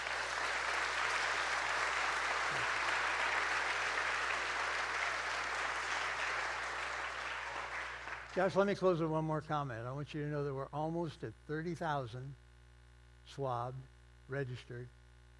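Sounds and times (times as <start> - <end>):
audience applause: 0.0 - 8.8
speech: 8.4 - 12.4, 13.3 - 15.0.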